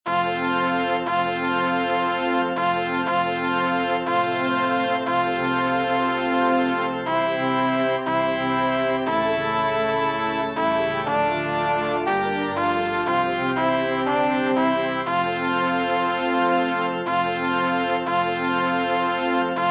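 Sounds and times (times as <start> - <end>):
organ piece: 0.1 - 19.6.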